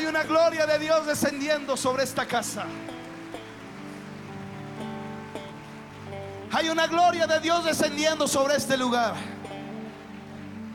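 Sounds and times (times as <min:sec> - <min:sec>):
audience applauding loudly: 0:00.0 - 0:06.8
speech: 0:00.1 - 0:03.0, 0:06.5 - 0:09.4.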